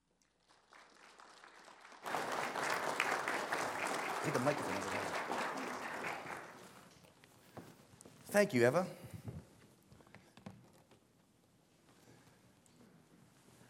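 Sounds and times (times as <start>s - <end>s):
audience cheering: 2.0s - 6.8s
speech: 4.2s - 5.5s, 8.4s - 9.0s.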